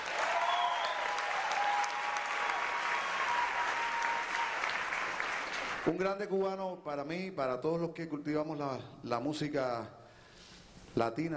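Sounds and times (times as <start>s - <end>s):
audience applause: 0.0s - 5.9s
speech: 5.8s - 10.0s, 11.0s - 11.3s.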